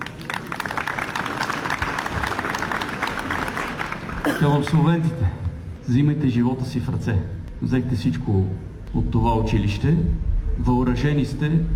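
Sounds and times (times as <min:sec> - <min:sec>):
audience applause: 0:00.0 - 0:04.8
speech: 0:04.3 - 0:11.7.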